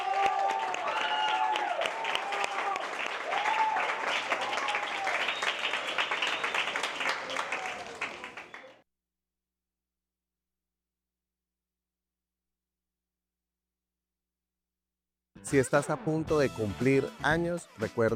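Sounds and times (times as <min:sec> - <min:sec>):
audience applause: 0:00.0 - 0:08.8
speech: 0:15.5 - 0:18.1.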